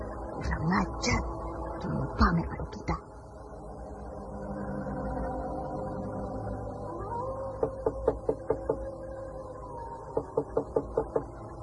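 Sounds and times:
steady low droning background: 0.0s - 11.6s
speech: 0.4s - 3.1s
knocking on the front door of a house: 7.6s - 8.9s, 10.1s - 11.4s.

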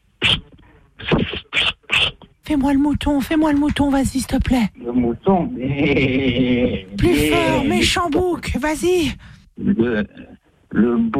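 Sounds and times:
person imitating a snake hissing: 0.2s - 2.2s
speech: 2.5s - 11.1s.

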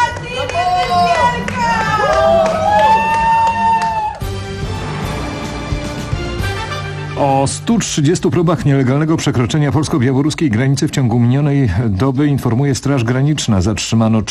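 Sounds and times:
crowd cheering a Paralympic medalist at Warsaw airport: 0.0s - 6.9s
speech: 7.4s - 14.2s.

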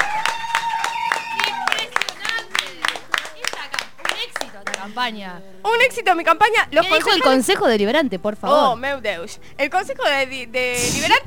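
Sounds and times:
studio audience applause: 0.0s - 4.2s
speech: 5.0s - 11.2s.

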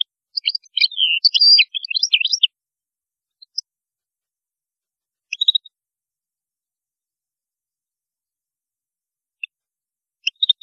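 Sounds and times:
European goldfinch singing: 0.0s - 2.5s, 3.4s - 3.7s, 5.3s - 5.7s, 10.2s - 10.6s.

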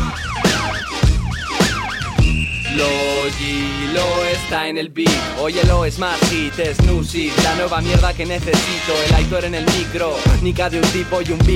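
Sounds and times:
alarm siren: 0.0s - 4.4s
speech: 2.8s - 11.5s.

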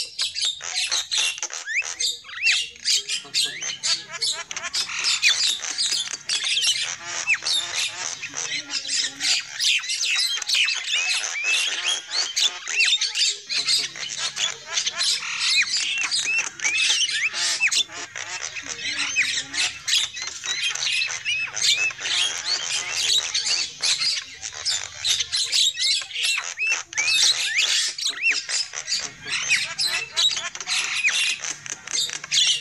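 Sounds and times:
lovebird group calling: 0.0s - 32.5s.

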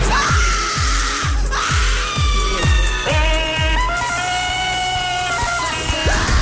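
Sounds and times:
person screaming with joy: 0.1s - 6.3s.

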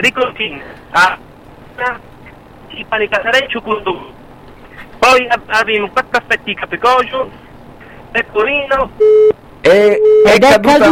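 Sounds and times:
speech: 0.0s - 2.1s, 2.7s - 4.2s, 5.0s - 7.4s, 8.1s - 10.9s
phone line tone after a dropped call: 9.0s - 10.5s.

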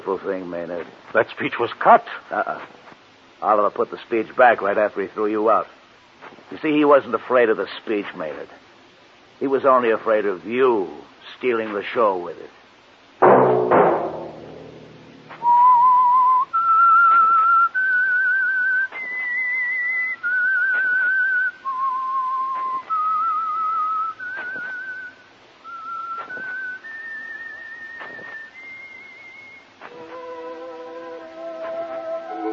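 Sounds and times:
speech: 0.1s - 2.8s, 3.4s - 8.6s, 9.4s - 12.6s
loud low chord: 13.2s - 15.4s, 29.9s - 32.5s
accompanying instruments: 13.2s - 16.3s, 25.8s - 32.5s
lone whistler whistling an eerie theme melody: 15.4s - 32.5s.

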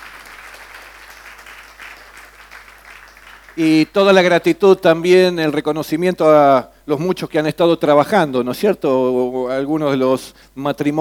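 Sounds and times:
church congregation applauding during a Sunday service: 0.0s - 4.0s
speech: 3.6s - 10.9s.

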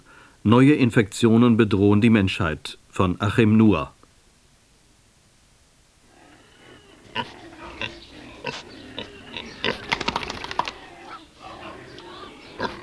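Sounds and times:
speech: 0.4s - 4.0s, 7.2s - 7.4s
pigs grunting in a pigsty: 6.0s - 12.8s.

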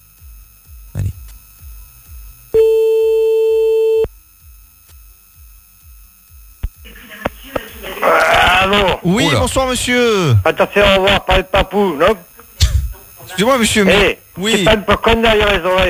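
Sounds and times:
low rhythmic pulses: 0.0s - 15.8s
telephone line tone while calling someone back: 2.6s - 4.1s
laughter: 6.8s - 15.8s
speech: 8.7s - 12.3s, 13.4s - 15.8s.

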